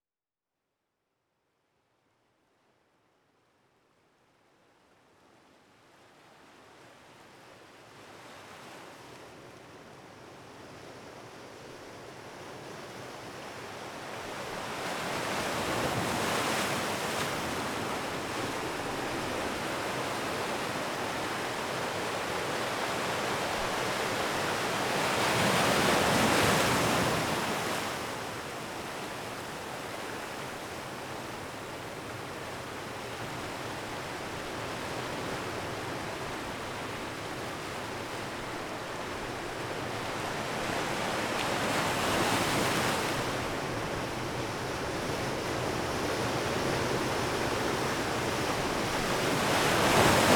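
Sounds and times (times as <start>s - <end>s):
ocean waves at Pleasant Beach: 12.6s - 50.3s.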